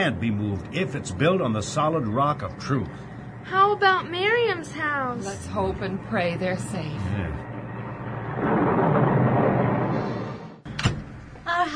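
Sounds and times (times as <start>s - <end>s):
speech: 0.0s - 7.5s
thunderstorm: 7.1s - 10.6s.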